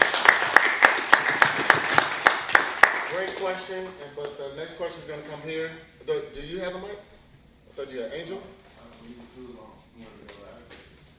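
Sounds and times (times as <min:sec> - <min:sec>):
softer scattered applause: 0:00.0 - 0:03.9
audience clapping in a steady rhythm: 0:00.0 - 0:04.4
speech: 0:03.4 - 0:07.1, 0:07.8 - 0:10.8.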